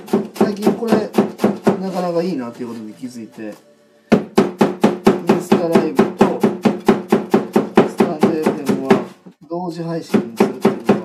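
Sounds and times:
knife chopping vegetables for a salad on a cutting board: 0.0 - 2.2, 4.1 - 9.2, 10.1 - 11.0
speech: 1.9 - 3.7, 5.4 - 6.4, 9.7 - 10.5.

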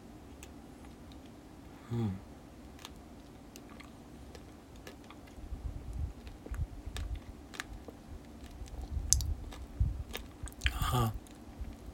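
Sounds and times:
speech: 1.9 - 2.3
person chewing chocolate with a lime gummy inside: 2.8 - 5.4, 6.1 - 11.9.

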